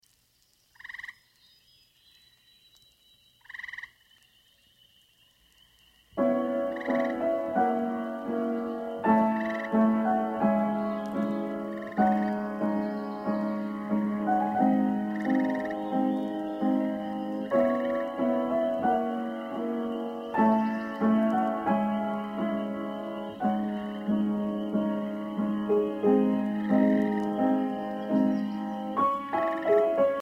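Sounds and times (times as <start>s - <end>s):
piano piece: 6.2s - 30.2s.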